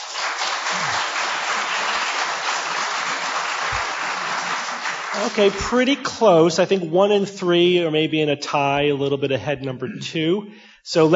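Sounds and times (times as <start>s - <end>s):
crowd applauding: 0.0s - 5.9s
speech: 5.2s - 11.1s.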